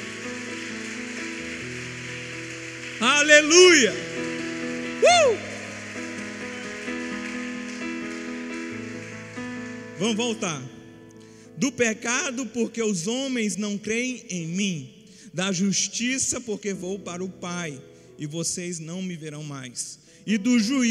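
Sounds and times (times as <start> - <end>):
audience clapping: 0.0 - 10.7
sustained keyboard chords: 0.0 - 12.7
speech: 3.0 - 4.1, 10.0 - 10.7, 11.6 - 20.8
person shouting: 5.0 - 5.6.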